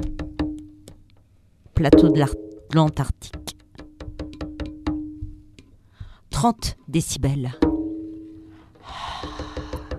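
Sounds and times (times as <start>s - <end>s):
speech: 1.8s - 3.4s, 6.4s - 7.7s
breathing: 5.8s - 6.3s, 8.4s - 9.9s.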